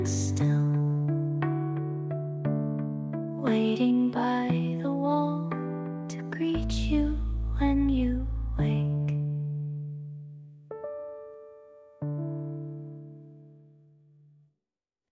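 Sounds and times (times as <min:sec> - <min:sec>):
lullaby singing: 0:00.0 - 0:09.6.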